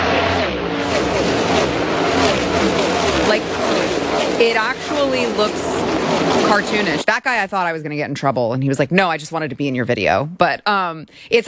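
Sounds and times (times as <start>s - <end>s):
race cars roaring past at high speed: 0.0s - 7.0s
speech: 4.4s - 5.7s, 6.5s - 11.4s.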